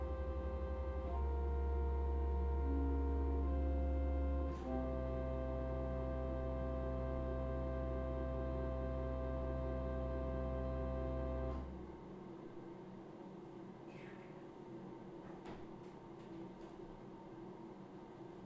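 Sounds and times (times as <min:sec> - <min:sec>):
organ adagio: 0:00.0 - 0:11.8.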